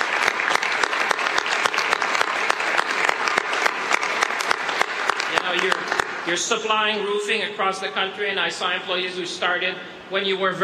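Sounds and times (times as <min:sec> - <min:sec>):
round of applause: 0:00.0 - 0:06.3
speech: 0:06.3 - 0:10.6.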